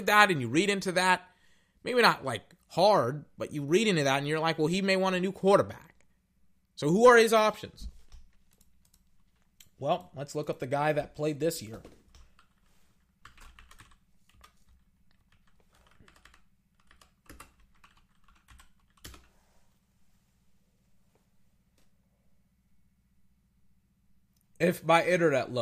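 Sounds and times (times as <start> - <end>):
speech: 0.0 - 5.9, 6.8 - 7.9, 9.8 - 12.0, 24.6 - 25.6
typing on a computer keyboard: 13.2 - 19.3.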